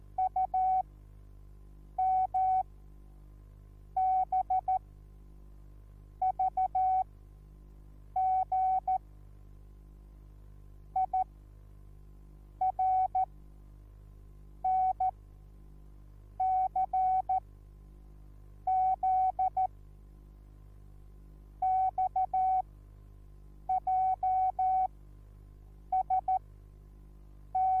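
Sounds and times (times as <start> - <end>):
morse code beeps: 0.2 - 0.8, 2.0 - 2.6, 4.0 - 4.8, 8.2 - 9.0, 11.0 - 11.2, 12.6 - 13.2, 14.7 - 15.1, 16.4 - 17.4, 18.7 - 19.7, 21.6 - 22.6, 23.7 - 24.9, 26.0 - 26.4, 27.6 - 27.7.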